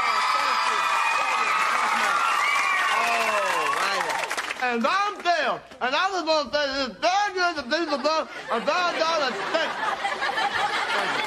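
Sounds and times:
audience clapping: 0.0 - 5.6
laughter: 0.8 - 2.4, 7.6 - 11.2
speech: 4.7 - 11.2.

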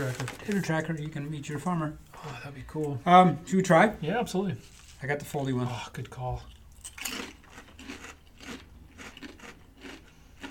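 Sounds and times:
speech: 0.0 - 7.2
kettle chip being bitten and crunched: 6.4 - 10.4.

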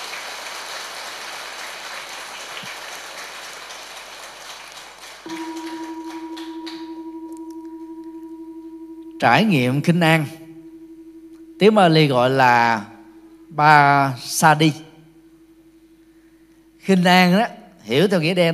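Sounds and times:
audience applause: 0.0 - 7.0
speech: 9.2 - 10.4, 11.6 - 12.9, 13.5 - 14.9, 16.8 - 18.5.

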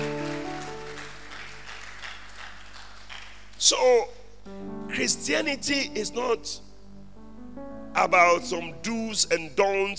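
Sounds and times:
audience clapping: 0.0 - 4.0
speech: 3.6 - 6.6, 8.0 - 9.9.

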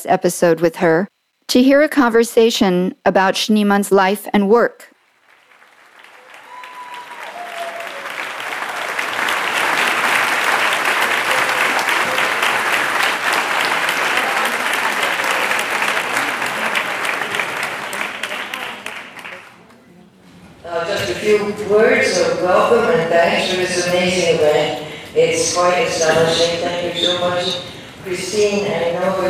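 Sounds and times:
speech: 0.0 - 4.9, 21.3 - 29.2
applause and cheering in a hall: 5.2 - 19.6.

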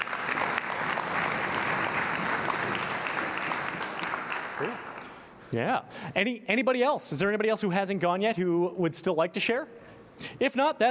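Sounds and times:
audience applause: 0.0 - 5.3
speech: 4.6 - 4.8, 5.5 - 10.8.

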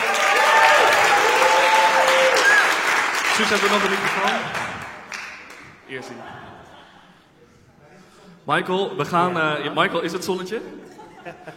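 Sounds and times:
faint whistles and cheers: 0.0 - 2.9
dense applause from a sizeable audience: 0.0 - 5.8
speech: 3.4 - 4.8, 5.9 - 6.5, 8.5 - 11.5
laughter: 6.0 - 7.6, 10.8 - 11.5.

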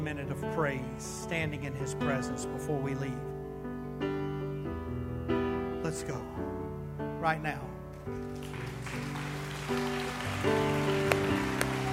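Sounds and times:
sustained keyboard chords: 0.0 - 11.9
speech: 0.1 - 3.4, 5.9 - 6.5, 7.2 - 9.1, 9.7 - 10.8
crowd clapping hands: 8.1 - 11.9.

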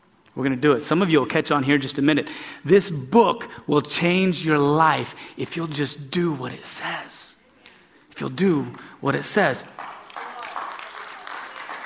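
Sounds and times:
speech: 0.4 - 7.3, 8.2 - 9.9
golf clap from audience: 9.8 - 11.8.

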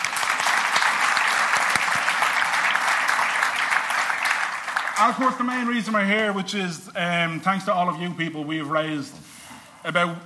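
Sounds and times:
crowd audience clapping: 0.0 - 6.1
speech: 5.0 - 9.2, 9.8 - 10.2.

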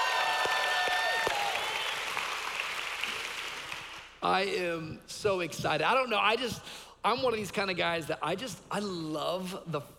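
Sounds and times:
church congregation cheering with high whoops: 0.0 - 2.2
church congregation applauding: 0.0 - 4.2
speech: 4.2 - 9.9.

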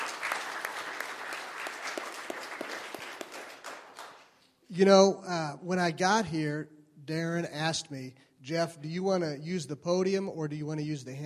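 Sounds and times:
audience round of applause: 0.0 - 4.3
speech: 4.7 - 11.2.

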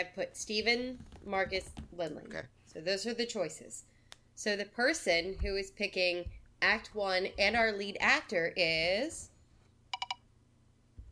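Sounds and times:
speech: 0.0 - 9.3
online decision wheel electronic beeps: 10.0 - 10.2.

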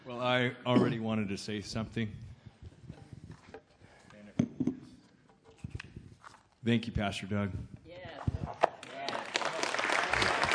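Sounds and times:
speech: 0.2 - 2.3, 6.6 - 7.7
audience applause: 8.9 - 10.5.

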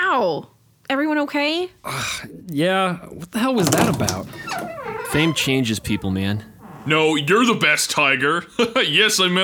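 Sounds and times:
speech: 0.2 - 9.4
massive hoof slamming into people: 3.6 - 7.6.

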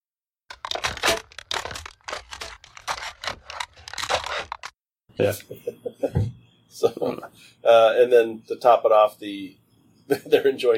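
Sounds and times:
aluminum TV tray crunching: 0.5 - 4.7
speech: 5.2 - 10.7.

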